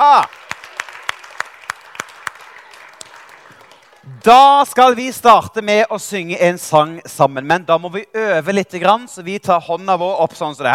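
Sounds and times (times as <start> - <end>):
audience clapping: 0.0 - 4.9
speech: 4.2 - 10.7.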